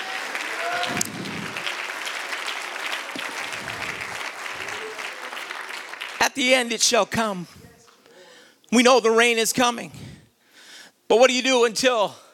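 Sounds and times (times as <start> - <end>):
audience shouting: 0.0 - 5.5
audience clapping: 0.0 - 7.0
speech: 6.4 - 7.6, 8.7 - 10.0, 11.1 - 12.2.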